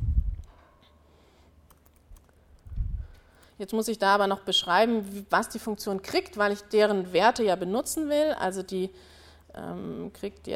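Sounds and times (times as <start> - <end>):
computer keyboard clicking while typing code: 1.7 - 2.4
soft low thumps: 2.7 - 3.2
speech: 3.6 - 10.5.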